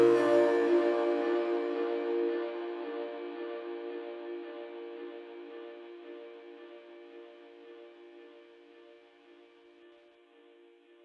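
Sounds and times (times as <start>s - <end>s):
1 kHz sine wave tone: 0.0s - 4.8s.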